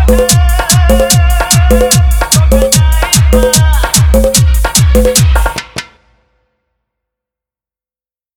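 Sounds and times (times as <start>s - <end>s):
bass mix music: 0.0s - 5.6s.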